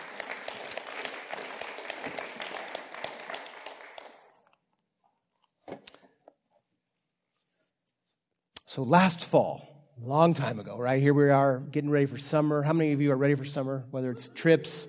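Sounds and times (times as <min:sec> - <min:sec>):
audience applause: 0:00.0 - 0:04.5
speech: 0:08.8 - 0:14.8.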